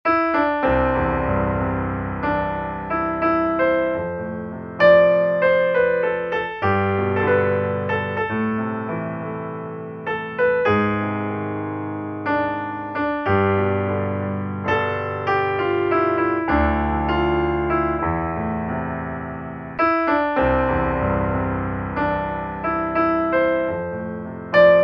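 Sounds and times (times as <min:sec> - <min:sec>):
piano: 0:00.0 - 0:24.8.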